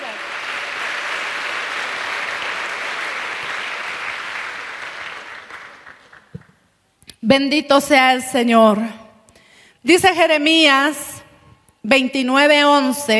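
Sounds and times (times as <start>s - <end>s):
audience applauding: 0.0s - 6.6s
speech: 7.2s - 9.0s, 9.8s - 11.1s, 11.8s - 13.1s.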